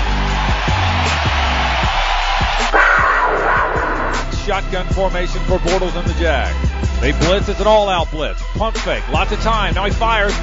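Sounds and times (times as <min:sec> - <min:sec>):
large stadium crowd cheering and shouting in a standing ovation: 0:00.0 - 0:06.5
speech: 0:04.5 - 0:10.4.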